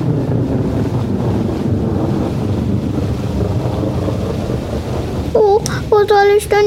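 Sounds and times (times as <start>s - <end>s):
heavy rain pouring: 0.0s - 6.6s
speech: 6.3s - 6.6s.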